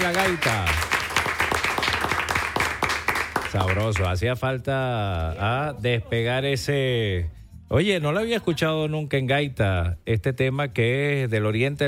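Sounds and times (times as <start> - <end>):
speech: 0.0 - 0.8, 3.5 - 11.8
audience applause: 0.0 - 4.2.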